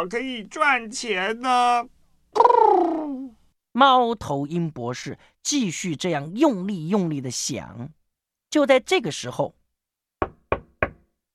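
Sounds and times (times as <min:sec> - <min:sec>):
speech: 0:00.0 - 0:09.6
knocking on a door: 0:10.2 - 0:11.1.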